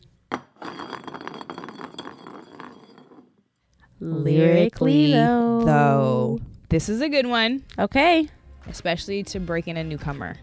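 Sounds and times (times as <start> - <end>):
glass bottle spinning: 0.0 - 3.6
speech: 4.0 - 10.4.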